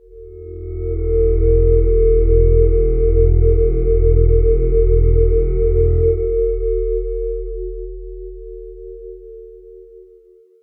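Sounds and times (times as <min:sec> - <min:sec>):
drone: 0:00.0 - 0:07.9.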